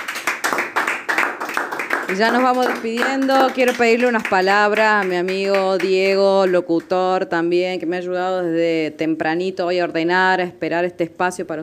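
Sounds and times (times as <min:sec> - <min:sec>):
applause, hands clapping: 0:00.0 - 0:07.0
speech: 0:02.1 - 0:11.6.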